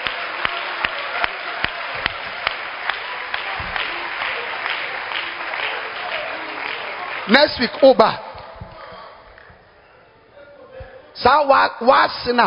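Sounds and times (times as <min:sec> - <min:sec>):
audience clapping hands: 0:00.0 - 0:09.8
speech: 0:07.3 - 0:08.2, 0:11.2 - 0:12.4.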